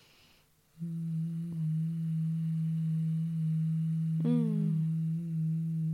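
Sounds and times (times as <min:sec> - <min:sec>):
person humming on the exhale: 0:00.8 - 0:05.9.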